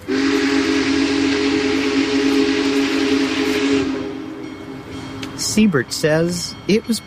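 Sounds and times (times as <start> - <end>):
steam locomotive whistle blaring: 0.0 - 5.0
Big Boy steam locomotive barreling past: 0.0 - 7.0
locomotive bells ringing: 4.1 - 7.0
speech: 5.6 - 7.0.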